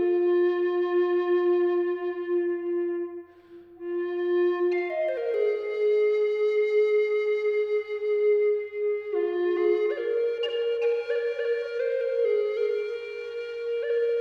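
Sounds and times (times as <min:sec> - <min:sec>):
maple flute model playing low F sharp at 432 Hz: 0:00.0 - 0:14.1.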